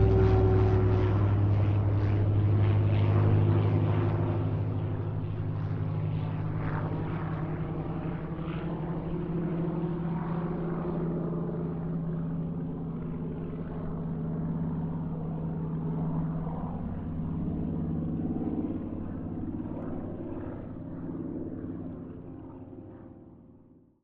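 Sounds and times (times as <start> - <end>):
Kittyhawk airplane pass in mixed aircraft squadrons: 0.0 - 23.8.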